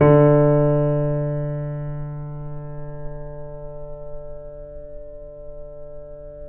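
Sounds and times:
grand piano: 0.0 - 6.4.

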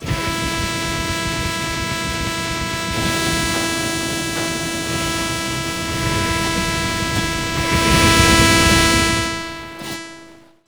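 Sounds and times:
food technology machines: 0.0 - 10.6.

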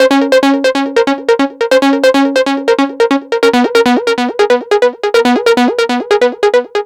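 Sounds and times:
trance synth lead: 0.0 - 6.7.

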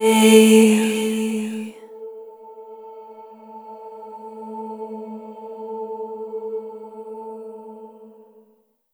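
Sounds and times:
vocal A3 A4 octave chord: 0.0 - 1.8.

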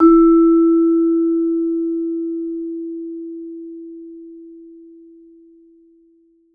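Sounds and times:
vibraphone E3 note with medium mallets: 0.0 - 2.7.

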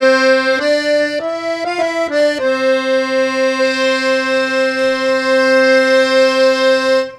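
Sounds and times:
accordion: 0.0 - 7.1.

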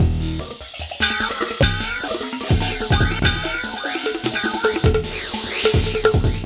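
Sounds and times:
gamelan drum and bass beat: 0.0 - 6.4.

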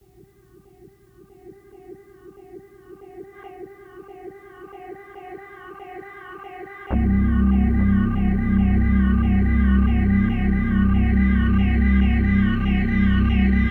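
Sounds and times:
hardcore breakbeat: 6.9 - 13.6.

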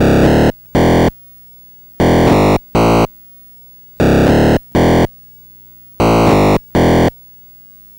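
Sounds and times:
Atari 2600 chiptune bass: 0.0 - 1.1, 2.0 - 3.1, 4.0 - 5.1, 6.0 - 7.1.

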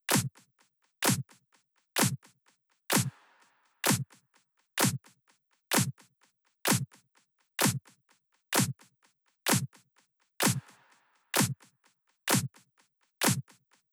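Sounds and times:
drum loop: 0.1 - 0.3, 1.0 - 1.2, 2.0 - 2.2, 2.9 - 3.1, 3.8 - 4.1, 4.8 - 5.0, 5.7 - 5.9, 7.6 - 7.8, 9.5 - 9.7, 10.4 - 10.6, 11.4 - 11.6, 12.3 - 12.5, 13.2 - 13.4
clap: 0.1 - 0.4, 1.0 - 1.4, 2.0 - 2.3, 2.9 - 4.2, 4.8 - 5.1, 5.7 - 6.0, 6.6 - 7.0, 7.6 - 8.8, 9.5 - 9.8, 10.4 - 11.7, 12.3 - 12.6, 13.2 - 13.6.

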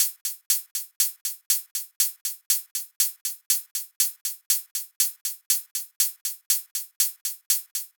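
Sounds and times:
hi-hat at 120 bpm: 0.0 - 7.9.

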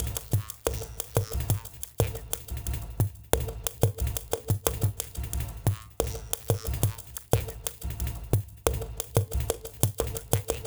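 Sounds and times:
glitched processed percussion: 0.0 - 10.6.

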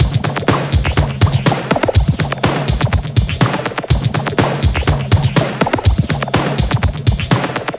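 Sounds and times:
filtered electronica drum and percussion loop: 0.0 - 7.7.

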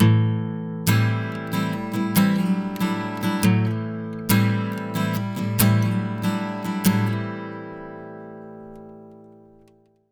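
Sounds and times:
acoustic guitar loops: 0.0 - 9.9.

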